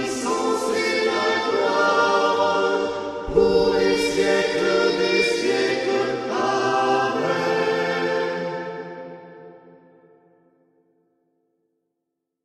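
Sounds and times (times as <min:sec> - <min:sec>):
prayer sung: 0:00.0 - 0:08.8.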